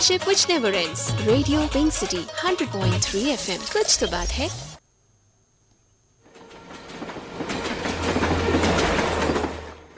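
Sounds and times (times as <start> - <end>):
speech: 0.0 - 4.7
metro train rolling along the rails: 6.3 - 9.9
rhythmic metro train wheel clacks: 6.4 - 9.9.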